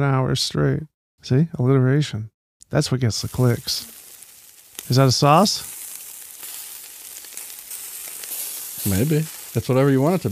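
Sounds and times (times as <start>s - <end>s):
speech: 0.0s - 4.0s, 4.9s - 5.7s, 8.8s - 10.3s
meat sizzling as it cooks: 2.9s - 10.3s.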